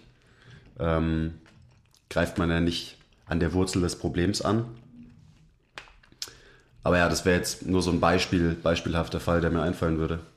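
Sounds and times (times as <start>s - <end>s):
chewing: 0.0s - 8.0s
speech: 0.8s - 1.4s, 2.1s - 4.8s, 6.8s - 10.3s.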